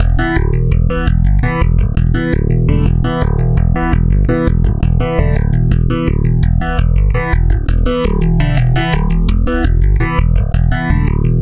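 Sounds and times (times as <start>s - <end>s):
stick bass loop: 0.0s - 11.4s.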